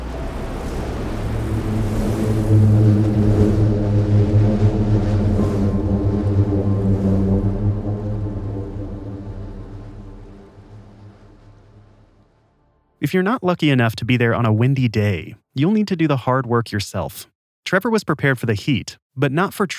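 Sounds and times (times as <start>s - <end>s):
booming sand dune avalanche droning: 0.0s - 12.8s
speech: 13.1s - 19.7s.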